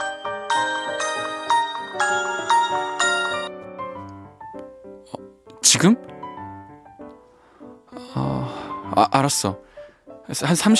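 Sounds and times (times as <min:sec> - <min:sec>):
phone ringing with incoming call: 0:00.0 - 0:03.8
speech: 0:05.7 - 0:06.1, 0:09.0 - 0:09.7, 0:10.3 - 0:10.7.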